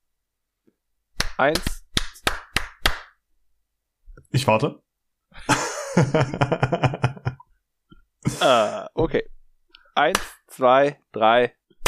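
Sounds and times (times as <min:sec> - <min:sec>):
people clapping: 0:01.2 - 0:03.1
speech: 0:01.4 - 0:01.7, 0:04.4 - 0:07.1, 0:08.4 - 0:09.4, 0:10.0 - 0:11.6
laughter: 0:05.4 - 0:07.4.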